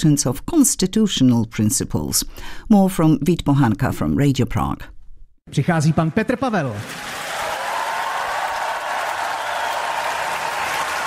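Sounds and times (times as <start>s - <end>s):
speech: 0.0s - 4.9s, 5.5s - 7.2s
audience applause greeting a speaker: 6.7s - 11.0s.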